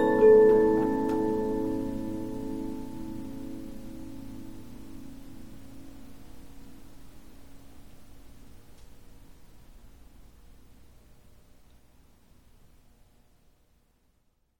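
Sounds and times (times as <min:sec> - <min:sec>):
Polyphon 15-inch disc music box playing: 0:00.0 - 0:03.2.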